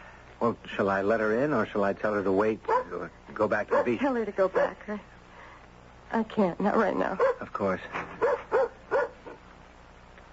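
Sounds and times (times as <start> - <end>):
speech: 0.4 - 5.1, 6.1 - 8.3
dog barking: 2.7 - 3.0, 3.6 - 4.8, 6.8 - 7.5, 8.2 - 9.4.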